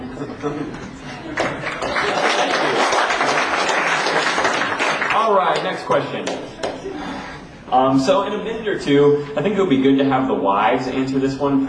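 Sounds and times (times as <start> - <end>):
speech: 0.2 - 1.8, 5.2 - 6.6, 7.7 - 11.6
audience applause: 1.3 - 6.8.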